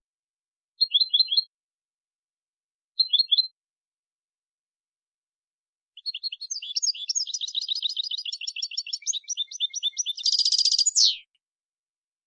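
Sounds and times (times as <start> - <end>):
European goldfinch twittering: 0.8 - 1.5, 3.0 - 3.5, 6.0 - 11.3.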